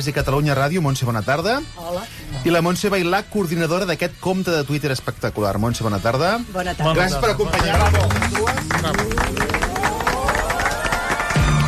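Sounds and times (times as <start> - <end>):
speech: 0.0 - 9.6
classic television channel theme tune: 5.6 - 11.6.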